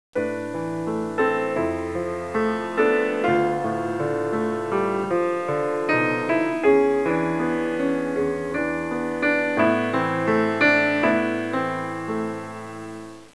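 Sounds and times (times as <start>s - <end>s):
classical music ringtones: 0.2s - 13.3s.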